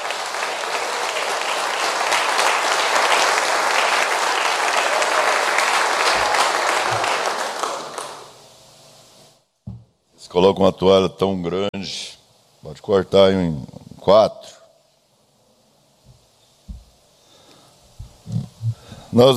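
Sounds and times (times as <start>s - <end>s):
audience applauding: 0.0s - 8.4s
soft thud: 9.7s - 9.9s
speech: 10.4s - 14.6s, 19.2s - 19.3s.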